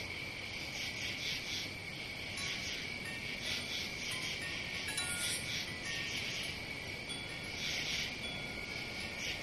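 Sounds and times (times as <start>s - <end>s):
cricket calling: 0.0s - 9.4s.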